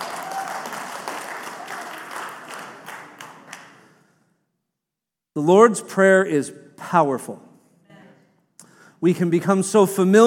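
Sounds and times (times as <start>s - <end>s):
audience clapping: 0.0s - 4.0s
speech: 5.4s - 7.5s, 9.0s - 10.2s.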